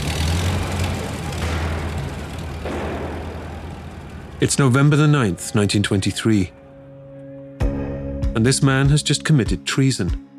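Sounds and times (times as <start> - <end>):
1923 getaway car engine roaring as it speeds away: 0.0 - 7.4
speech: 4.4 - 6.6, 8.4 - 10.3.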